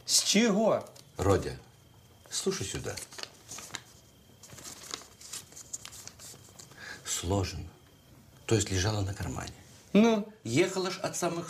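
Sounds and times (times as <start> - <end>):
speech: 0.1 - 1.7, 2.3 - 3.2, 7.2 - 7.8, 8.5 - 11.4
paper document crinkling and rustling: 2.5 - 6.8.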